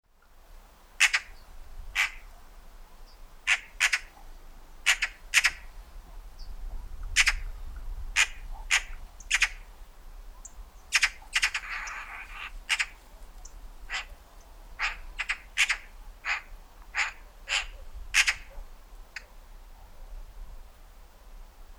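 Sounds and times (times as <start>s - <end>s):
Eurasian magpie Pica pica harsh rasping chatter: 1.0s - 1.4s, 2.0s - 2.3s, 3.4s - 4.2s, 4.8s - 5.7s, 7.2s - 7.4s, 8.2s - 9.7s, 10.9s - 14.2s, 14.8s - 18.6s.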